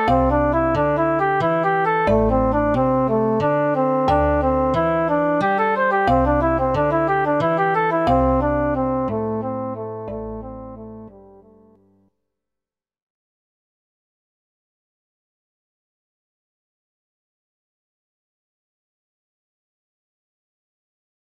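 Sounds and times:
rhythm changing between 2/4, 3/4 and 4/4: 0:00.0 - 0:11.1.

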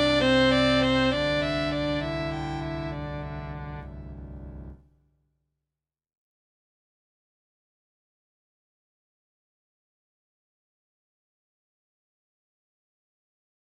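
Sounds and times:
string quintet playing: 0:00.0 - 0:04.7.

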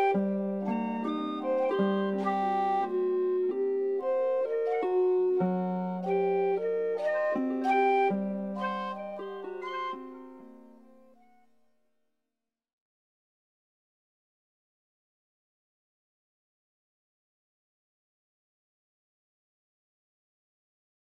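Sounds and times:
melody with lots of blues notes and sevenths: 0:00.0 - 0:11.5.

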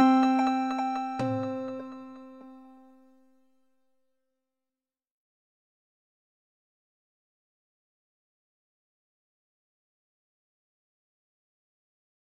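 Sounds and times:
harmonics in long bar with polyrhythms and normal rhythms: 0:00.0 - 0:02.8.

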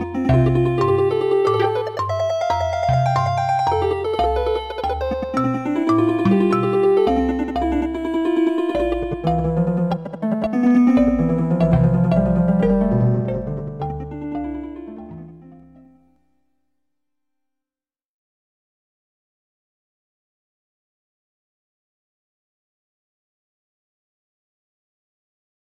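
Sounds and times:
four against five polyrhythm: 0:00.0 - 0:15.9.

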